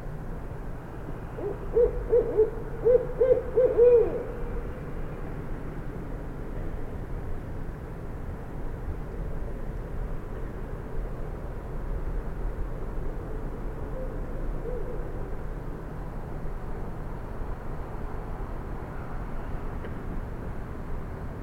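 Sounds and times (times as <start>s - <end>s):
background hum: 0.0s - 19.8s
passing traffic: 0.0s - 21.4s
Barred Owl hooting: 1.4s - 4.5s, 14.0s - 15.2s.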